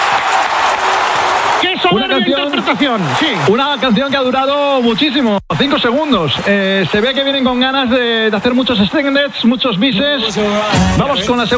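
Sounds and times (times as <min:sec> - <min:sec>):
audience applauding: 0:00.0 - 0:04.4
speech: 0:01.9 - 0:11.5.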